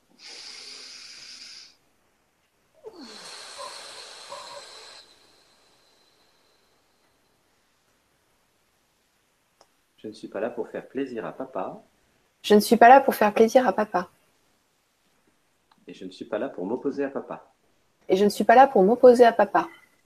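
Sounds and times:
deep breath: 0:00.0 - 0:01.8, 0:02.8 - 0:07.5
speech: 0:10.0 - 0:14.2, 0:15.9 - 0:17.5, 0:18.1 - 0:19.8.

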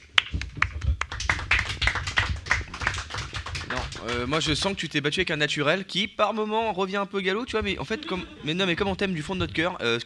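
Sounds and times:
audience applauding: 0:00.0 - 0:04.8
speech: 0:04.0 - 0:10.0
laughter: 0:07.5 - 0:09.5.

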